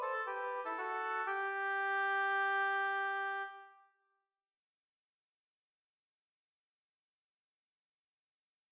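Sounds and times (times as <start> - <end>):
duet of two oboes: 0.0 - 3.8.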